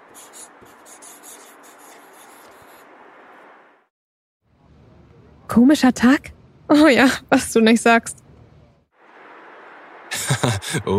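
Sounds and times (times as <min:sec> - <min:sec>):
pen scratching on a slip of paper: 0:00.0 - 0:02.9
speech: 0:05.5 - 0:08.2, 0:10.4 - 0:10.9
laughter: 0:10.1 - 0:10.9.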